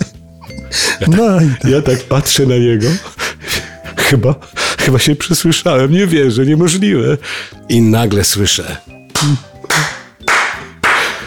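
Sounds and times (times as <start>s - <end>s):
speech: 0.7s - 3.2s, 4.1s - 9.9s
laughter: 1.0s - 3.0s
actors applauding: 9.1s - 11.2s.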